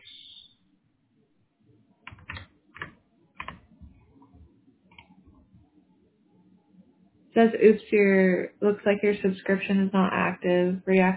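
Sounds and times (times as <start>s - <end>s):
typing on a computer keyboard: 2.1s - 3.6s
speech: 7.4s - 11.1s.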